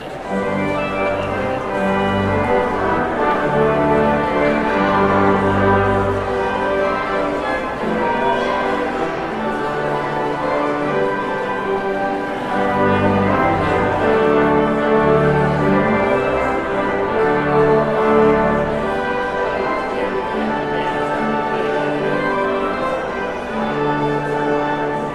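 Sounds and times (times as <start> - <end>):
postlude: 0.0 - 25.1.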